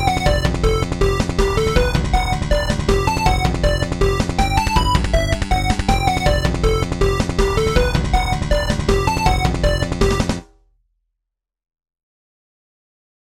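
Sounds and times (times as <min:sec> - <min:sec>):
MIDI music: 0:00.0 - 0:10.4.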